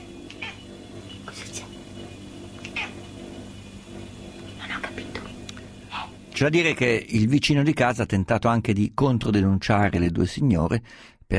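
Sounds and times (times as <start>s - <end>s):
steady low hum: 0.0s - 6.8s
cat meowing: 0.3s - 0.6s, 2.7s - 3.0s
speech: 6.4s - 11.3s.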